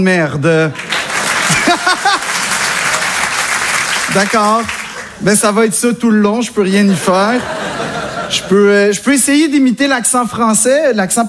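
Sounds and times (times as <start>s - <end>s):
speech: 0.0s - 1.9s, 4.1s - 7.6s, 8.3s - 11.2s
laughter: 0.7s - 3.7s, 7.2s - 8.8s
crowd clapping: 0.7s - 5.3s.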